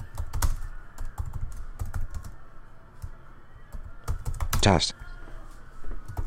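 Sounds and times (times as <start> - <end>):
computer keyboard typing: 0.0 - 2.4, 3.7 - 4.7, 6.1 - 6.2
speech: 4.6 - 5.0.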